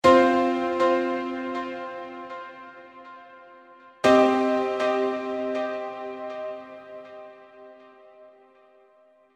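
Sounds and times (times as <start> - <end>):
piano: 0.0 - 9.3.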